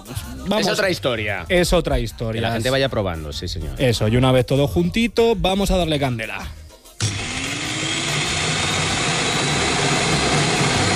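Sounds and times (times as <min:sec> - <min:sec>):
speech: 0:00.1 - 0:06.6
electric food chopper running: 0:07.0 - 0:10.9.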